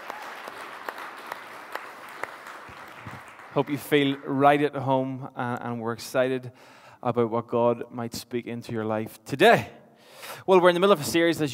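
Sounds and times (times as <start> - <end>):
church congregation applauding newcomers: 0.0 - 4.7
speech: 3.6 - 9.8, 10.4 - 11.5.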